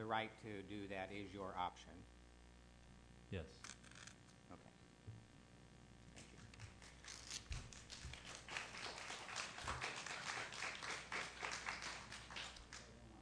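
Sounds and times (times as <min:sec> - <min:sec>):
speech: 0:00.0 - 0:02.2, 0:03.3 - 0:03.8, 0:04.5 - 0:04.8
audience applause: 0:07.6 - 0:13.0.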